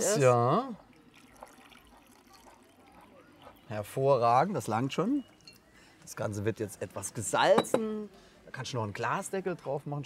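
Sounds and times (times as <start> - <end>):
speech: 0.0 - 0.8, 3.7 - 5.3, 6.1 - 10.0
water being poured into a cooking pot of potatoes for mash: 0.2 - 5.6.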